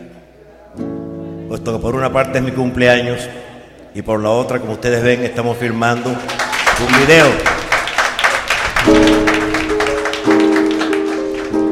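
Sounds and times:
speech: 1.5 - 7.6
audience applause: 5.8 - 11.7.

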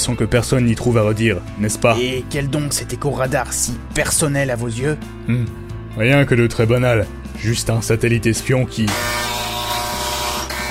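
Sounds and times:
speech: 0.0 - 9.3
annoying piercing buzzer ringing: 8.9 - 10.6.

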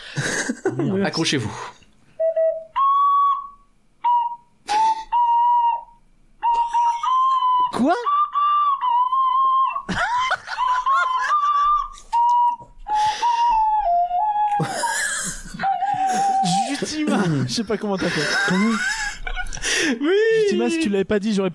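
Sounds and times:
laughter: 0.2 - 1.0, 9.9 - 12.3, 14.6 - 20.8
speech: 0.8 - 1.8, 17.6 - 19.0, 19.9 - 21.5
ocarina melody played by ear: 2.2 - 17.2.

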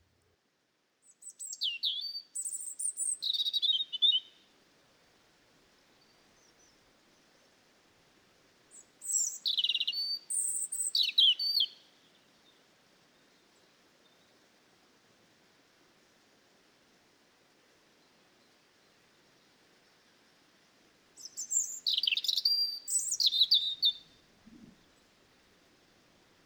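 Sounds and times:
European robin singing in a garden: 1.1 - 4.4, 8.7 - 11.8, 21.2 - 24.8.

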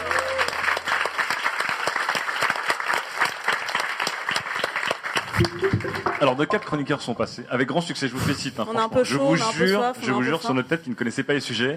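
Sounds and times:
audience applause: 0.0 - 6.9
speech: 5.4 - 11.7.

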